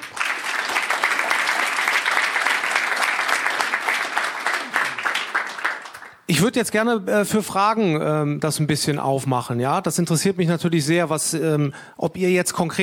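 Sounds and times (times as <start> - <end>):
audience applause: 0.0 - 6.2
speech: 6.3 - 12.8.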